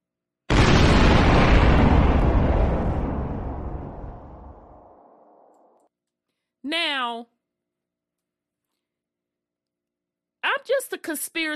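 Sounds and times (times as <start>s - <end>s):
bomb explosion sound effect: 0.5s - 5.7s
speech: 10.6s - 11.5s.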